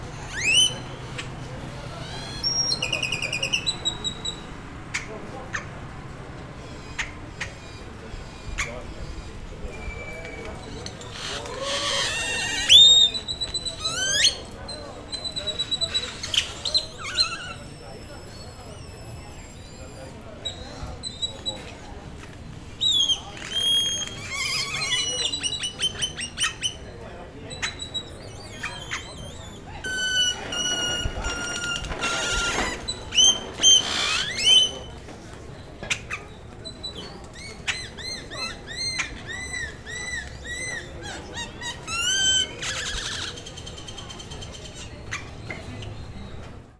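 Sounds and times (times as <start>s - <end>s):
birds at sunset: 0.0s - 21.9s, 22.8s - 46.7s.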